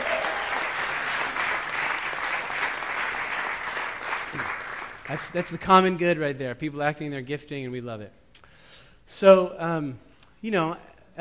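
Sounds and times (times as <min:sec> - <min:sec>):
crowd applauding: 0:00.0 - 0:05.7
speech: 0:05.1 - 0:08.2, 0:09.2 - 0:11.1.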